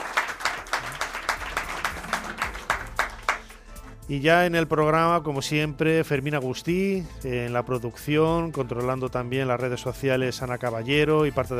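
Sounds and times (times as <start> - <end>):
audience applause: 0.0 - 3.6
speech: 4.1 - 11.5.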